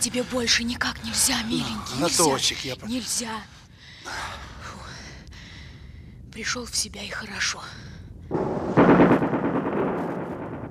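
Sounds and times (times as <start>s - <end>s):
speech: 0.0s - 4.3s, 6.4s - 8.4s
heavy gunfire: 8.3s - 10.6s.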